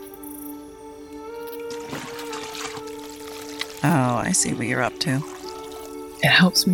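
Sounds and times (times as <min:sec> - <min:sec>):
running water rinsing food: 0:01.6 - 0:06.5
speech: 0:03.8 - 0:05.4, 0:06.2 - 0:06.7.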